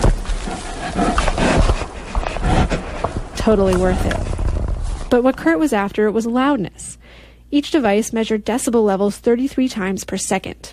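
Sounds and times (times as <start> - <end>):
bear grunting: 0.0 - 5.2
noisy rumbling background: 0.0 - 10.2
speech: 3.4 - 4.3, 5.1 - 6.8, 7.5 - 10.5.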